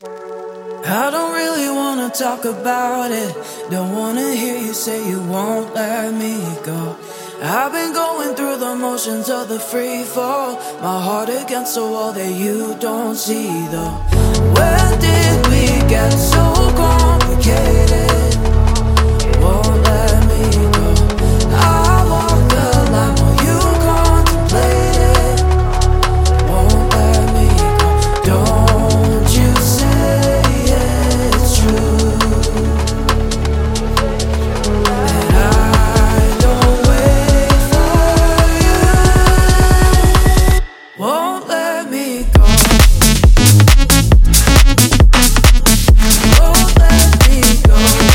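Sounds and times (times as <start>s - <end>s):
construction kit full music mix: 0.0s - 48.1s.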